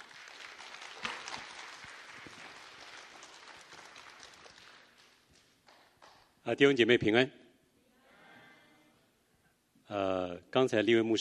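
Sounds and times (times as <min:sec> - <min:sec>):
room full of people applauding in welcome: 0:00.0 - 0:06.2
speech: 0:06.5 - 0:07.4, 0:10.6 - 0:11.2.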